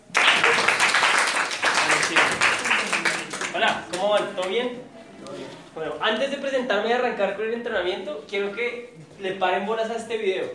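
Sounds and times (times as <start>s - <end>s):
strong applause: 0.0s - 4.5s
speech: 3.7s - 10.5s.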